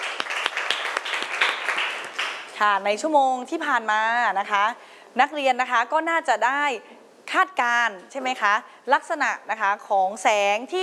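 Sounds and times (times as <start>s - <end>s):
group of students applauding: 0.0s - 2.6s
speech: 2.6s - 10.8s.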